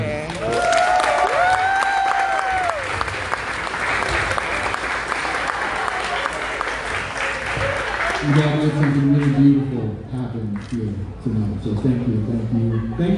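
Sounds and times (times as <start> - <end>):
audience applause: 0.3 - 9.6
speech: 9.9 - 13.1
laughter: 12.4 - 13.1.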